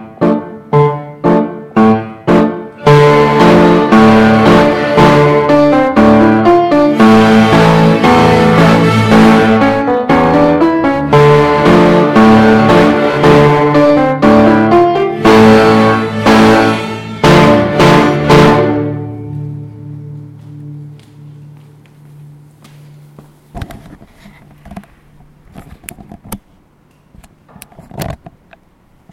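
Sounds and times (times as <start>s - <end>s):
strings playing a hornpipe: 1.9s - 19.6s.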